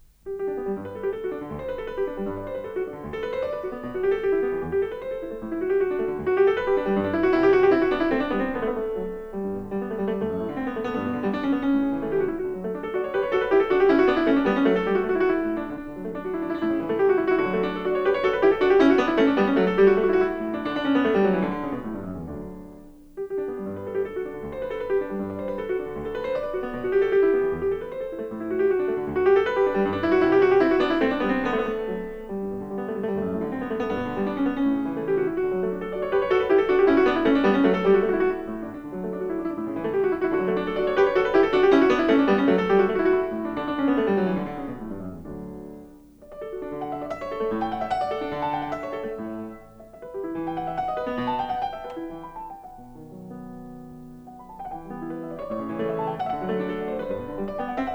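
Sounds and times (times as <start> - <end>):
keyboard suite: 0.0 - 57.9.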